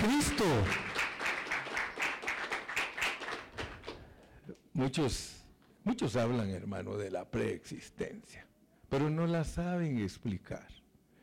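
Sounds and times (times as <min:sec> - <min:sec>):
audience clapping hands: 0:00.0 - 0:04.4
speech: 0:00.1 - 0:00.8, 0:04.8 - 0:10.8.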